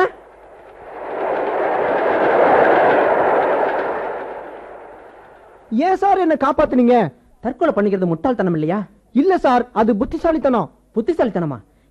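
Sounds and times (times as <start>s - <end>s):
train approaching along the tracks: 0.0s - 5.8s
speech: 5.8s - 11.7s.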